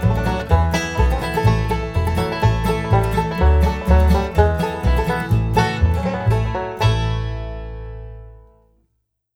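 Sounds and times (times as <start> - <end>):
banjo signal: 0.0 - 8.4.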